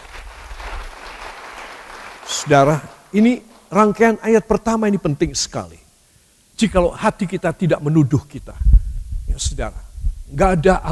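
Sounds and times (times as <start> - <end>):
audience applause: 0.0 - 3.1
speech: 2.4 - 5.8, 6.6 - 8.7, 9.3 - 10.9.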